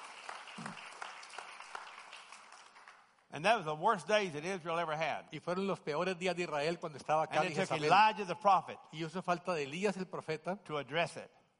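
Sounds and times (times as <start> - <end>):
audience clapping: 0.0 - 3.4
speech: 3.3 - 11.4.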